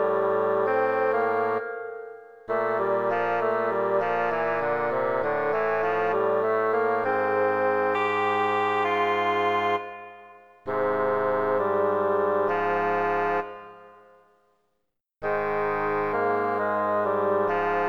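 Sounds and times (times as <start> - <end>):
chiptune music: 0.0 - 14.0
bassoon: 0.0 - 14.2, 15.2 - 17.8.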